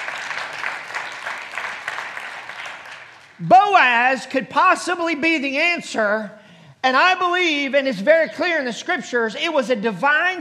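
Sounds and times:
audience clapping in praise: 0:00.0 - 0:03.5
speech: 0:03.4 - 0:10.3.

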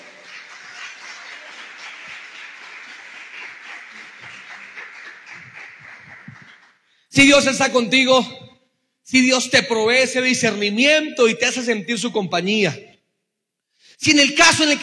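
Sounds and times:
audience applause: 0:00.0 - 0:06.8
speech: 0:07.2 - 0:08.4, 0:09.1 - 0:12.9, 0:14.0 - 0:14.8.

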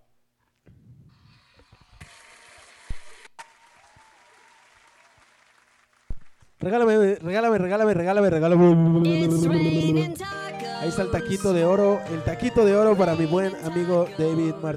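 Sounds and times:
audience applause: 0:02.1 - 0:06.2
speech: 0:06.6 - 0:14.7.

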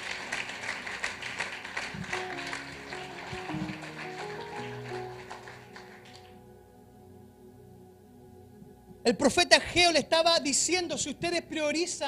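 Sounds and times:
audience applause: 0:00.0 - 0:06.4
speech: 0:09.1 - 0:12.0.

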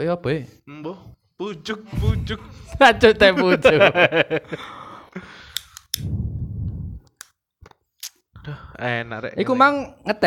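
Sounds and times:
speech: 0:00.0 - 0:05.3, 0:08.5 - 0:10.2
laughter: 0:03.0 - 0:05.2
lighter being clicked: 0:05.5 - 0:06.1
low rushing burst from lighter strike: 0:06.0 - 0:07.1.

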